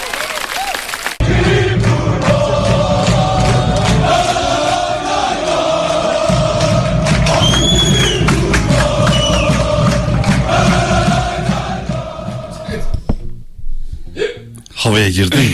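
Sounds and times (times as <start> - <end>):
football fans chanting: 1.2 - 13.0
speech: 15.0 - 15.5.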